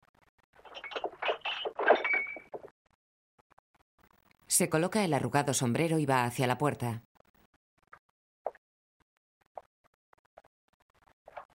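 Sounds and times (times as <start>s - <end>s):
stumbling over clinking bottles: 0.7s - 2.7s
speech: 4.6s - 7.1s.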